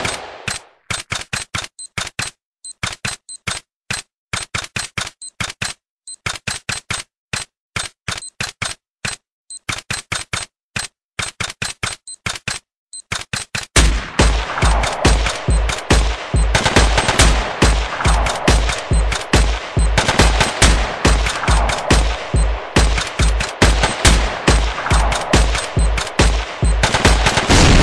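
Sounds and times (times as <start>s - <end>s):
handgun shot: 0.0s - 1.1s, 13.8s - 27.7s.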